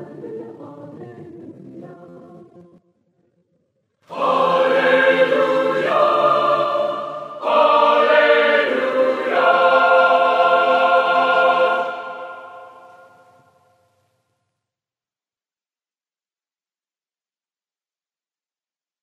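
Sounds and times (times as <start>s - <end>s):
Christmas a cappella choir singing: 0.0s - 2.8s, 4.1s - 13.6s.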